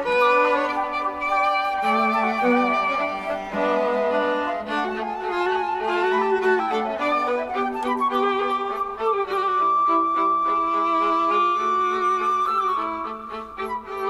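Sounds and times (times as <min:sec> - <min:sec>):
flute quartet playing a fast classical movement: 0:00.0 - 0:14.0.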